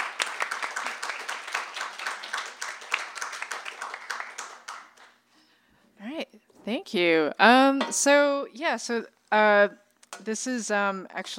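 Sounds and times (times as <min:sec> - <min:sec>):
audience applause welcoming a comics artist to the stage: 0:00.0 - 0:05.2
speech: 0:06.6 - 0:11.3.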